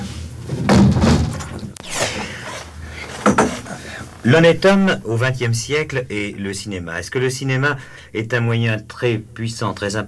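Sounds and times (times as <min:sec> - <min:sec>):
window being closed: 0:00.6 - 0:05.4
shuffling noise: 0:01.3 - 0:06.0
speech: 0:04.2 - 0:10.0.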